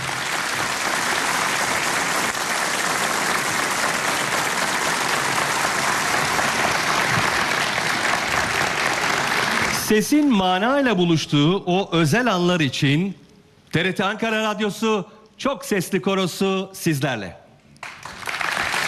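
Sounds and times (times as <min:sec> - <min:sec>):
audience applause welcoming conductor: 0:00.0 - 0:10.1, 0:17.8 - 0:18.8
speech: 0:09.9 - 0:17.4.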